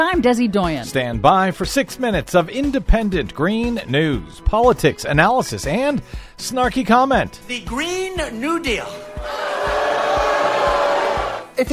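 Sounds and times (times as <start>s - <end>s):
speech: 0.0s - 9.4s
Trump rally crowd booing: 8.9s - 11.5s.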